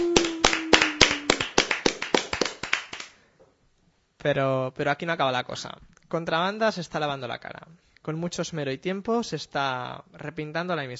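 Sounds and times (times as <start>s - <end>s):
applause, hands clapping: 0.0s - 3.2s
speech: 4.2s - 10.9s.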